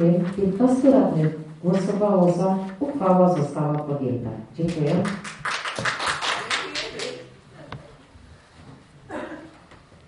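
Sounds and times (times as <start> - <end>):
speech: 0.0 - 5.9
applause in a council chamber: 4.6 - 7.3.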